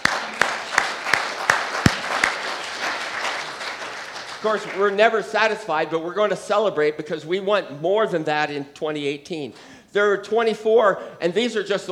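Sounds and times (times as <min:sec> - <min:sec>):
audience applause: 0:00.0 - 0:05.0
speech: 0:04.4 - 0:11.9.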